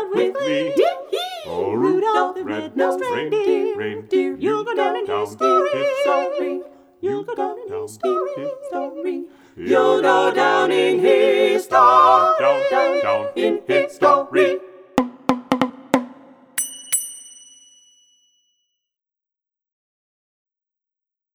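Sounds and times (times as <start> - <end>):
carolers singing a Christmas song: 0.0 - 14.9.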